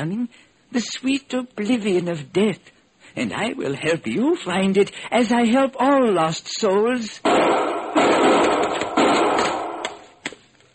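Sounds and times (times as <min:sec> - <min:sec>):
speech: 0:00.0 - 0:08.8
booming gunshots: 0:07.2 - 0:10.2.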